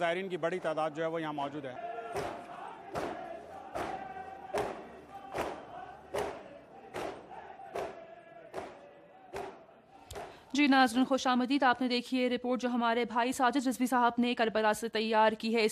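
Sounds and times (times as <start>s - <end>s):
speech: 0.0s - 3.1s, 10.6s - 15.7s
massed crowd voices: 0.0s - 10.4s
chest-beating by Muharram mourning processions in Karbala: 2.1s - 10.4s.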